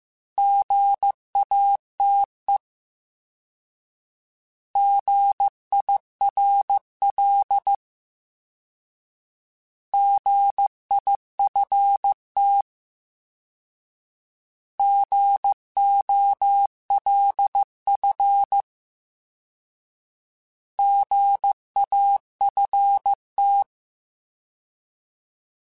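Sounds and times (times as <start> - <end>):
Morse code CW code groups: 0.4 - 2.3, 4.8 - 7.8, 10.0 - 12.6, 14.8 - 18.6, 20.8 - 23.7.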